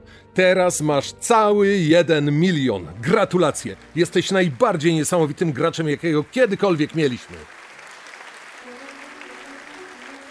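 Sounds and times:
speech: 0.4s - 7.6s
audience applauding: 3.0s - 10.2s.

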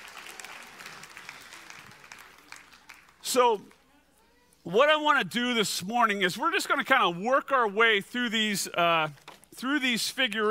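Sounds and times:
audience round of applause: 0.0s - 3.3s
speech: 3.3s - 3.8s, 4.6s - 10.4s.

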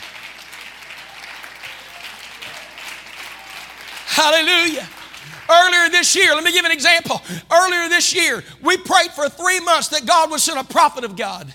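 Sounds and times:
audience clapping hands: 0.0s - 7.1s
speech: 4.2s - 11.5s.

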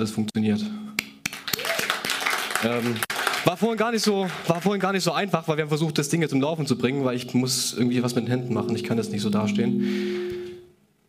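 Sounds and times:
speech: 0.0s - 0.8s, 2.6s - 10.4s
crowd applause: 1.3s - 4.9s
faint tone: 6.7s - 10.9s.

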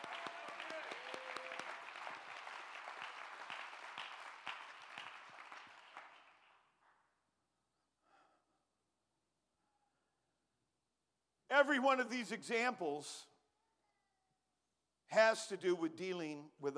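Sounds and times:
audience clapping hands: 0.0s - 7.0s
speech: 11.6s - 13.3s, 15.1s - 16.7s.

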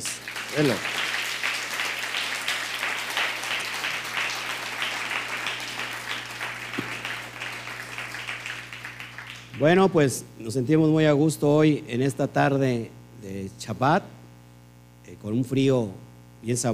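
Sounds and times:
speech: 0.0s - 1.0s, 9.6s - 14.2s, 15.2s - 16.7s
audience applause: 0.0s - 9.9s.

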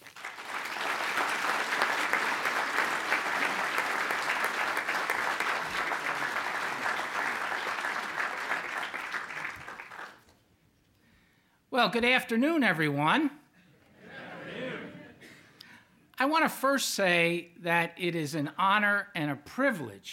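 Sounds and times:
audience applause at a Virginia Historical Society talk: 0.0s - 10.3s
speech: 11.8s - 13.4s, 16.3s - 20.1s
laughter: 13.7s - 15.4s.

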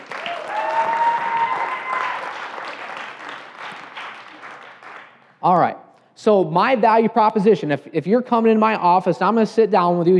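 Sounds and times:
audience applauding: 0.0s - 5.3s
speech: 5.4s - 10.1s.

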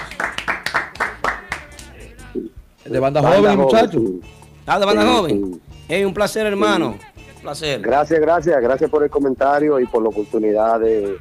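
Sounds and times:
applause: 0.0s - 1.9s
speech: 2.9s - 11.1s.

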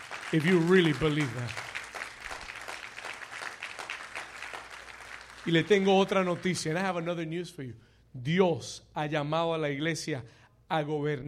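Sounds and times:
audience applause: 0.0s - 6.8s
speech: 0.3s - 1.6s, 5.5s - 11.2s.

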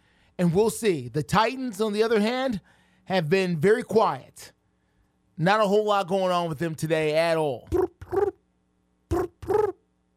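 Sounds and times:
speech: 0.4s - 4.6s, 5.4s - 8.2s
person imitating cricket chirps: 7.6s - 8.4s, 9.1s - 9.8s.

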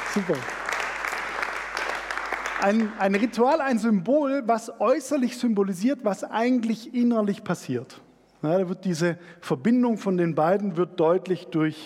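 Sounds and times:
audience applause: 0.0s - 3.5s
speech: 0.2s - 0.6s, 2.6s - 11.8s.

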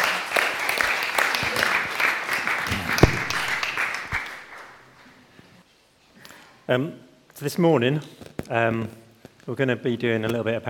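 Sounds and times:
audience applause: 0.0s - 4.8s
speech: 6.7s - 10.6s.

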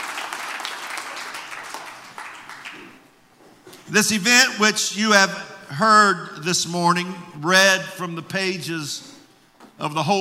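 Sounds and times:
audience hand clapping: 0.0s - 3.1s
speech: 3.9s - 9.1s, 9.8s - 10.2s.

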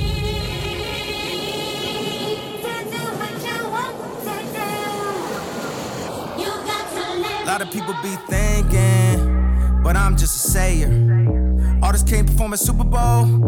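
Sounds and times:
train passing by: 0.0s - 8.4s
speech: 7.6s - 13.4s.

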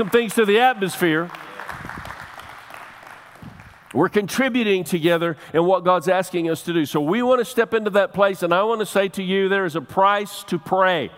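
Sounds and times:
speech: 0.0s - 1.4s, 3.9s - 11.1s
crowd clapping: 0.0s - 4.0s.

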